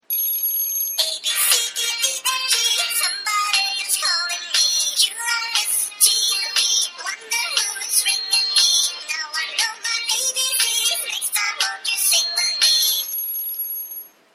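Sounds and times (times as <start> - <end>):
children's song: 1.0 - 13.2.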